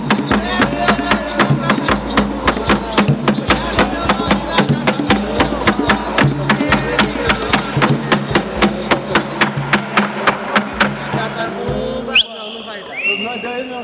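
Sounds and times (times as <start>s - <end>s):
batuque de umbigada music in Piracicaba: 0.0s - 13.7s.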